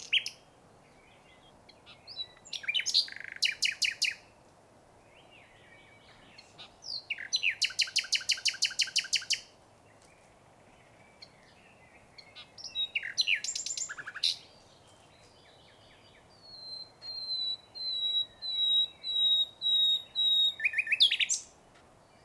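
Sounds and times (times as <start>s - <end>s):
nightingale Luscinia megarhynchos singing: 0.0s - 4.4s, 5.1s - 10.2s, 10.8s - 22.2s.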